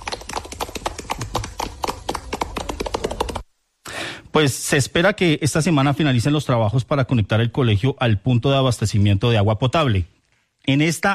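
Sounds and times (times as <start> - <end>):
group of students applauding: 0.0 - 3.4
speech: 4.4 - 11.1.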